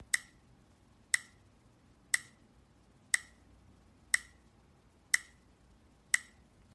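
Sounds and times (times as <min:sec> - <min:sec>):
timer: 0:00.0 - 0:03.5, 0:04.1 - 0:04.5, 0:05.1 - 0:06.5.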